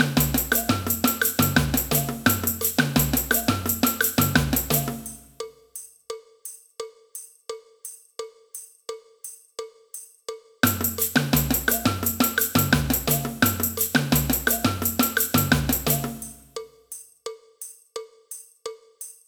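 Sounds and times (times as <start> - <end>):
samba band: 0.0 - 5.3, 10.6 - 16.5
cowbell: 0.0 - 19.2.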